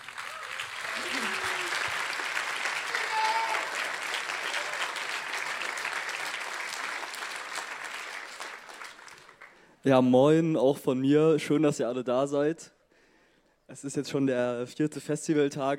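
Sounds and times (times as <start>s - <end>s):
audience applause: 0.0s - 9.6s
faint voices and whoops: 0.2s - 2.1s, 2.9s - 5.1s
speech: 9.8s - 12.8s, 13.8s - 15.7s.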